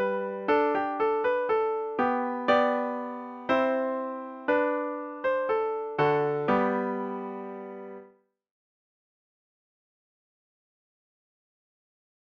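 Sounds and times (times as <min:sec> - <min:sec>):
piano: 0:00.0 - 0:08.2.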